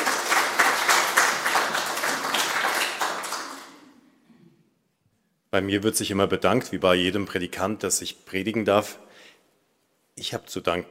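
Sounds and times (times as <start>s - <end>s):
audience applause: 0.0s - 3.8s
speech: 5.5s - 9.1s, 10.2s - 10.8s.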